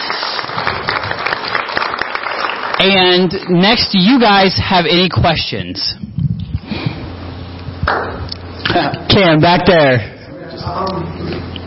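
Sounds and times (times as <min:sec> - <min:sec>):
audience applause: 0:00.0 - 0:03.6
speech: 0:02.8 - 0:06.0, 0:08.8 - 0:11.1.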